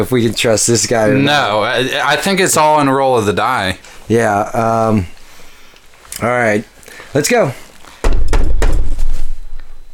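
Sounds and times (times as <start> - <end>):
speech: 0.0 - 5.2, 6.2 - 7.6
heavy knocking on a door: 8.0 - 9.0.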